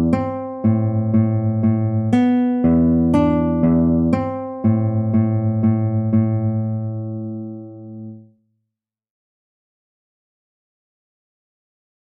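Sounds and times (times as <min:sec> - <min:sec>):
guitar duet prelude: 0:00.0 - 0:08.3.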